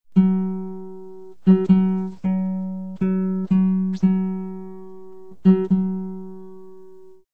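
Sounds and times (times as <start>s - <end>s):
guitar: 0.0s - 7.3s.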